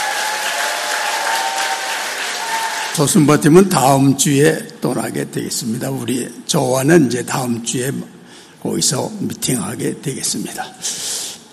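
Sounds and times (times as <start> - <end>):
audience applause welcoming a team: 0.0 - 3.3
speech: 3.0 - 11.1.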